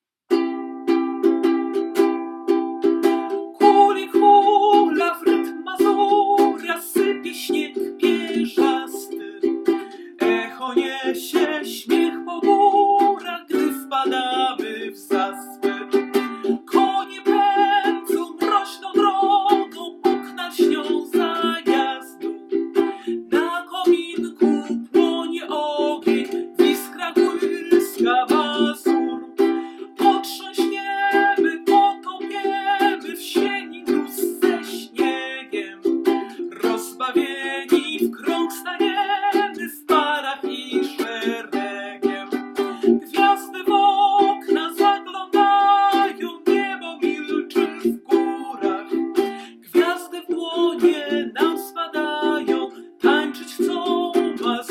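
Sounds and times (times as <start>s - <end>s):
person singing a mazurka in C major: 0.3s - 54.7s.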